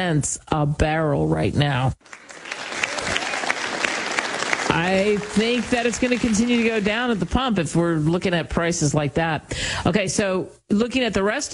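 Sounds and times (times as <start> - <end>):
speech: 0.0 - 2.2, 4.7 - 11.5
crowd applause: 2.0 - 7.7.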